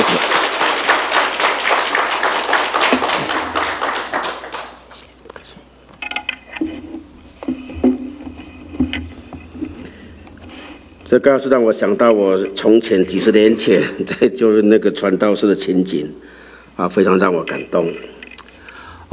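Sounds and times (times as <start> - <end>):
warm applause from audience: 0.0 - 5.1
speech: 11.2 - 18.2.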